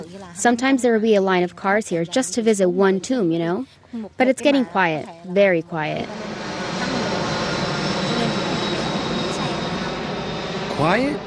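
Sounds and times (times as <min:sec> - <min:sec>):
speech: 0:00.1 - 0:06.3, 0:10.8 - 0:11.2
jet airplane roaring: 0:05.8 - 0:11.2.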